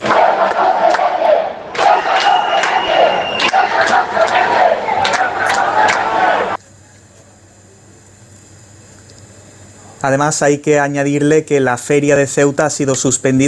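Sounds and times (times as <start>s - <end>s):
crowd shouting in protest: 0.0s - 6.6s
speech: 10.0s - 13.4s.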